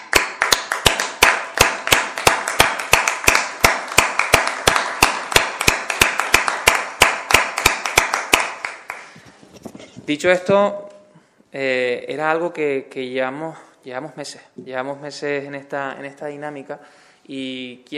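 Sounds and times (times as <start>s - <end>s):
hand clapping: 0.0s - 9.2s
speech: 10.1s - 10.8s, 11.5s - 17.9s.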